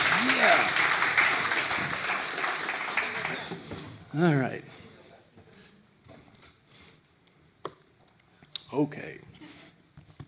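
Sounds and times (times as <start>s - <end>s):
audience clapping: 0.0s - 4.0s
speech: 4.2s - 4.7s, 8.8s - 9.3s.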